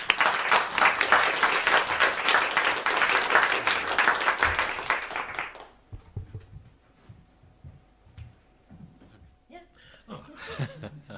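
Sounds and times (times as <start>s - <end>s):
audience at an LSE evening lecture applauding guest speakers: 0.0s - 5.9s
laughter: 10.1s - 11.1s.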